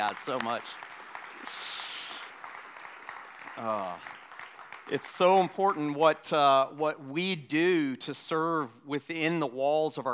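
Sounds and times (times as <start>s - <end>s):
speech: 0.0s - 1.6s, 3.6s - 4.1s, 4.9s - 10.1s
audience applause: 0.0s - 5.6s.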